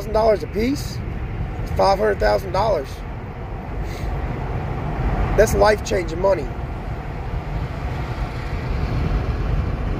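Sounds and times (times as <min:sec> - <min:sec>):
road noise in a car driving home from work: 0:00.0 - 0:09.9
speech: 0:00.1 - 0:01.1, 0:01.8 - 0:03.1, 0:05.4 - 0:06.6.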